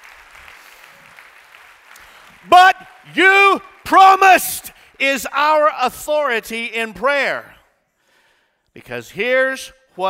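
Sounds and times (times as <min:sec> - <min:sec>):
audience clapping: 0:00.0 - 0:04.2
speech: 0:02.4 - 0:07.5, 0:08.8 - 0:10.0.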